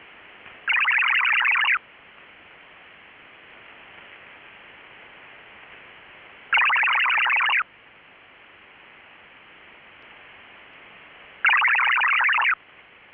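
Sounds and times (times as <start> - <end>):
MFSK-17 125 baud digital radio data tones: 0.7 - 1.8, 6.5 - 7.6, 11.4 - 12.6.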